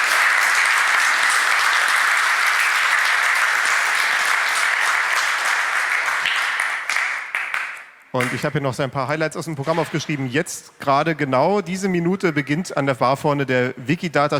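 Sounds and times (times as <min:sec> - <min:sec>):
audience applause: 0:00.0 - 0:07.9
speech: 0:08.2 - 0:14.3.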